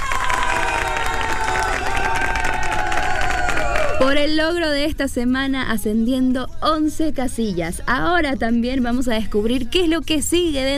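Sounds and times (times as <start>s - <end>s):
crowd cheering and clapping for a music artist's chart success: 0.0s - 4.3s
speech: 4.0s - 10.7s.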